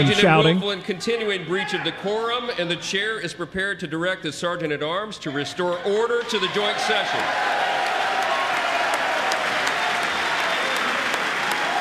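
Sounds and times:
speech: 0.0s - 7.6s
scattered cheers: 5.9s - 11.8s
large crowd applauding in a big indoor hall: 6.2s - 11.8s.

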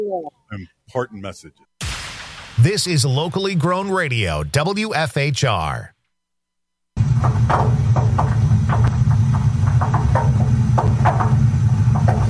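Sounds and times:
speech: 0.0s - 1.7s, 2.6s - 6.0s, 7.4s - 8.8s
old water heater groaning with low rumble: 7.0s - 12.2s.

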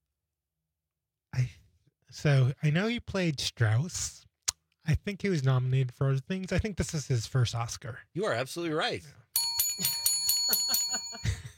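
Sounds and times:
speech: 2.1s - 4.3s, 4.9s - 9.2s, 9.8s - 10.6s
weak quiz bell dinging: 9.4s - 11.5s.

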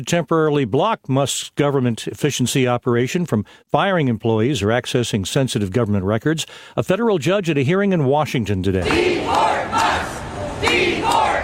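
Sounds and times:
speech: 0.0s - 10.1s
protesters chanting at a rally: 8.8s - 11.4s.

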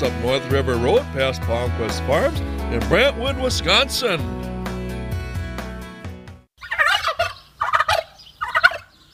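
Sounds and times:
speech: 0.0s - 4.5s
turkey gobbling: 6.6s - 9.0s.

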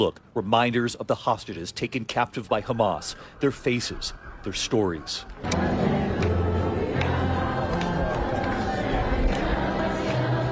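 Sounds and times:
speech: 0.0s - 6.0s
crowd quietly singing in Hostages Square, Tel Aviv: 5.2s - 10.5s.

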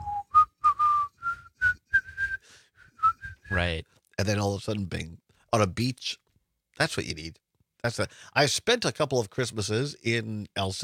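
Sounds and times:
person whistling the tune from a beer commercial: 0.0s - 3.6s
speech: 3.5s - 6.2s, 6.8s - 10.8s.

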